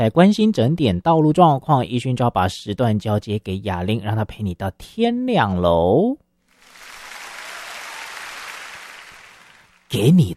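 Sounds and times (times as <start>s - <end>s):
speech: 0.0s - 6.2s, 9.9s - 10.3s
crowd applauding: 6.5s - 10.0s.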